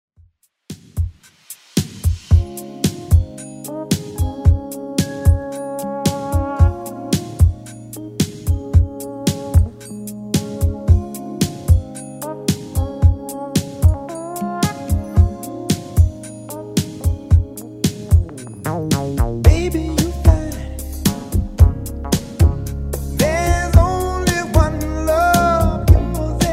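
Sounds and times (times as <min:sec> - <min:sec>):
80s style music at 112 bpm: 0:00.7 - 0:26.5.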